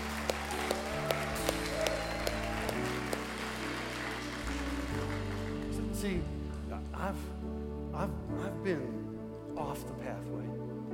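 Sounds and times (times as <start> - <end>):
audience applause: 0.0 - 6.0
speech: 6.0 - 6.4, 7.0 - 7.4, 8.0 - 9.0, 9.6 - 10.6.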